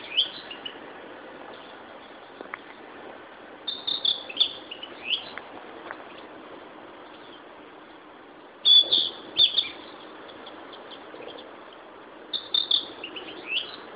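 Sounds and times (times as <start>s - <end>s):
Narcissus flycatcher song: 0.0s - 0.8s, 3.7s - 5.4s, 8.6s - 11.4s, 12.3s - 13.8s
steady hiss: 0.0s - 13.9s.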